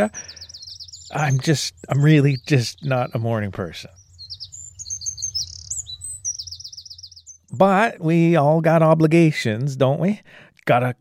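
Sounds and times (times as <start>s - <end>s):
speech: 0.0s - 0.4s, 1.1s - 4.0s, 7.6s - 10.9s
bird trilling: 0.0s - 7.6s
birds singing in the morning: 0.0s - 10.4s.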